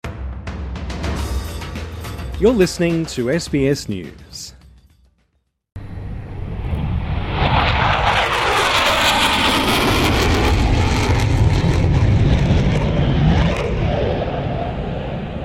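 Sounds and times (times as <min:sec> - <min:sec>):
speech: 0:02.4 - 0:04.6
military aircraft jet-engine roar at Exercise Pitch Black in Darwin: 0:05.8 - 0:15.4.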